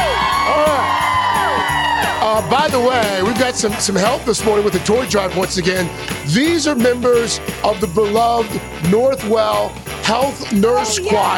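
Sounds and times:
high whoops and shouts: 0.0 - 3.4
studio crowd cheering: 0.0 - 5.4
speech: 2.4 - 11.3.

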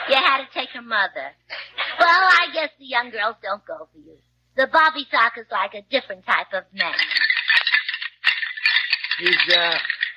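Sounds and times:
speech: 0.1 - 7.2, 9.2 - 9.9
rattling bones: 7.0 - 10.1.

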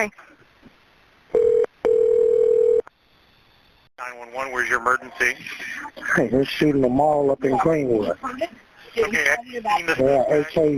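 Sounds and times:
speech: 0.0 - 0.4, 4.0 - 10.7
telephone ringback tone during call transfer: 1.4 - 2.8.

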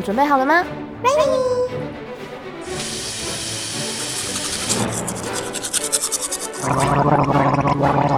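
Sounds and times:
speech: 0.0 - 1.8, 6.6 - 8.1
toothbrush scrubbing: 2.6 - 7.0
person gargling: 6.6 - 8.1.

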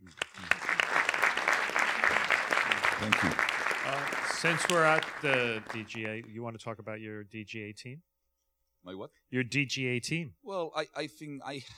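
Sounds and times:
audience applause: 0.0 - 6.2
speech: 3.0 - 8.1, 8.8 - 11.7.

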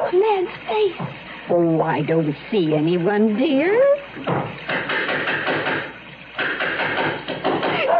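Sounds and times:
speech: 0.2 - 4.4
heavy knocks on a door: 4.2 - 7.8.

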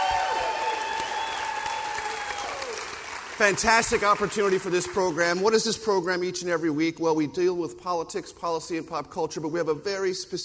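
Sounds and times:
live theater audience applauding at the Paramount Theater in Austin, Texas: 0.0 - 5.4
speech: 3.4 - 10.4.

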